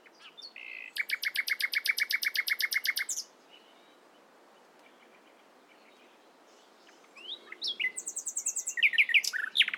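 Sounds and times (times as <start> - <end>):
Common nightingale Luscinia megarhynchos whistled song: 0.2 - 4.0, 7.1 - 9.7.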